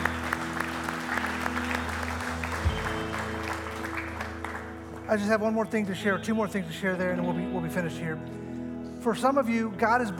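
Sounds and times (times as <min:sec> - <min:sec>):
room full of people clapping: 0:00.0 - 0:05.6
speech: 0:05.1 - 0:08.4, 0:09.0 - 0:10.1.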